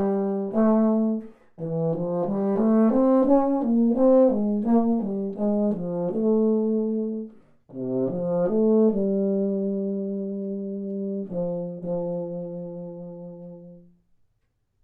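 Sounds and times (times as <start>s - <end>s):
baritone: 0.0s - 13.9s.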